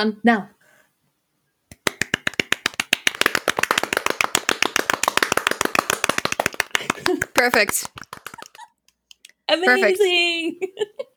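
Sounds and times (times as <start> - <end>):
speech: 0.0 - 0.6, 7.4 - 8.1, 9.5 - 11.1
small group applauding: 1.7 - 8.7.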